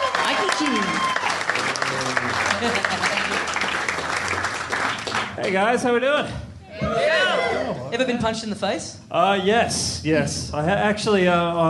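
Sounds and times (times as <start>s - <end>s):
live audience clapping: 0.0s - 5.9s
speech: 5.5s - 7.0s, 7.6s - 11.6s.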